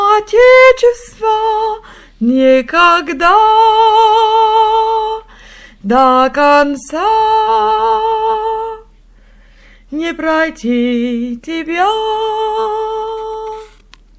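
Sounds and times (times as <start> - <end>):
soprano voice singing: 0.0 - 9.0, 9.9 - 13.8.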